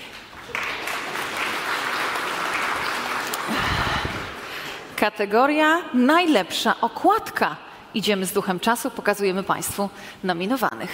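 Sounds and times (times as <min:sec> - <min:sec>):
audience applause: 0:00.0 - 0:04.7
speech: 0:05.0 - 0:10.9.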